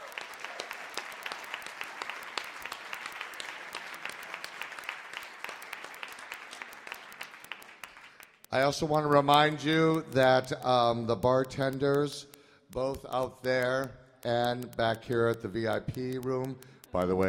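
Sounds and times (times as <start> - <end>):
audience applause: 0.0 - 8.4
speech: 8.5 - 17.2.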